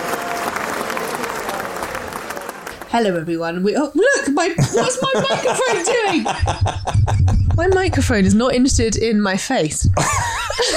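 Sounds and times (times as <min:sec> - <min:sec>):
crowd applauding: 0:00.0 - 0:03.0
speech: 0:02.9 - 0:10.7
laughter: 0:04.6 - 0:08.3, 0:10.0 - 0:10.7.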